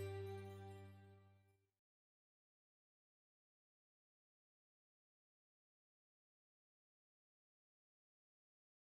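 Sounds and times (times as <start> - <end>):
instrumental music: 0.0 - 1.4.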